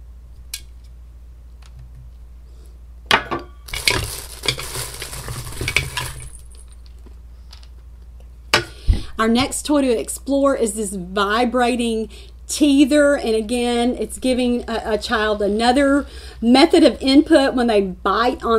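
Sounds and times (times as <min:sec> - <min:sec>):
wooden Montessori baby rattle shaken: 0:03.7 - 0:06.8
speech: 0:09.2 - 0:18.5.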